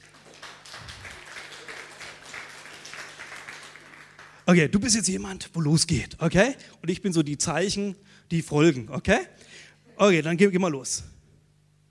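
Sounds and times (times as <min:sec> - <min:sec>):
applause: 0:00.0 - 0:04.6
speech: 0:04.5 - 0:11.2.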